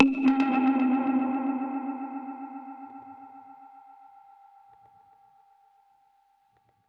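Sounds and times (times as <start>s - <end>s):
dub percussion hit: 0.0s - 3.6s.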